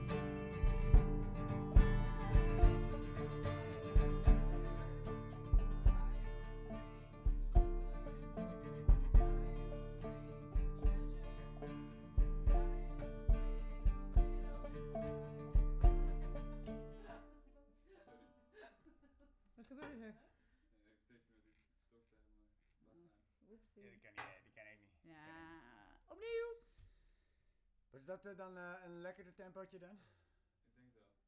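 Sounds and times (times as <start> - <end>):
chords: 0.0 - 17.1.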